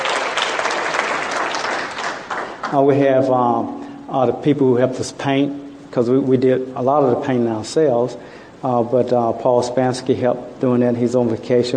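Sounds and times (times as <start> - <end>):
audience applause: 0.0 - 2.9
speech: 2.7 - 11.7.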